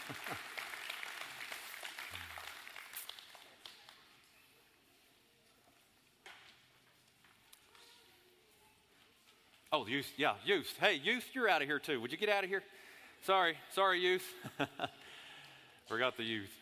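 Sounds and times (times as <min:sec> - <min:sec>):
crowd clapping for the kids: 0:00.0 - 0:04.0
speech: 0:00.1 - 0:00.5, 0:09.8 - 0:15.0, 0:15.9 - 0:16.6.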